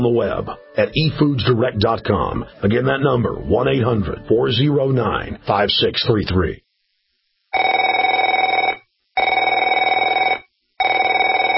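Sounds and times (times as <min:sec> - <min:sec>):
speech: 0:00.0 - 0:06.6
telephone bell ringing: 0:07.6 - 0:11.5.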